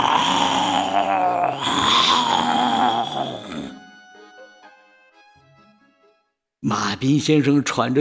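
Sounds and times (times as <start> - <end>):
lion roaring loudly: 0.0 - 3.8
speech: 6.7 - 7.9.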